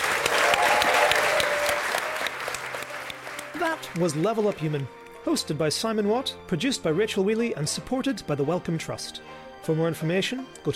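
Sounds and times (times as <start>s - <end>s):
live audience applause at the Science Gallery in Dublin: 0.0s - 4.9s
speech: 4.0s - 10.7s.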